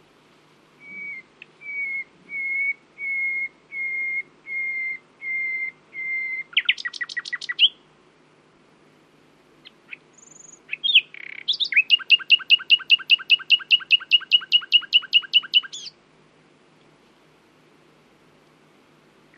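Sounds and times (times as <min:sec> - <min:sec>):
common nightingale Luscinia megarhynchos singing: 0:00.8 - 0:07.9, 0:09.6 - 0:16.0.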